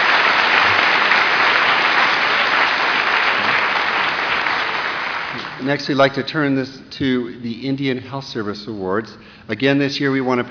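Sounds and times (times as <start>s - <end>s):
audience applause: 0.0s - 5.8s
speech: 5.6s - 10.4s.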